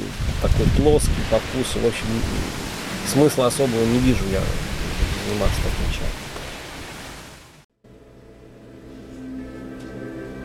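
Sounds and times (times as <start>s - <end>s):
rain falling: 0.0s - 7.6s
speech: 0.4s - 4.7s, 5.3s - 6.2s.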